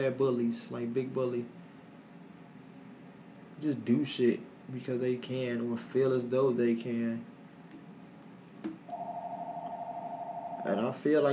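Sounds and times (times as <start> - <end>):
speech: 0.0 - 1.6, 3.6 - 7.3, 10.6 - 11.3
house phone ringing: 8.9 - 10.8.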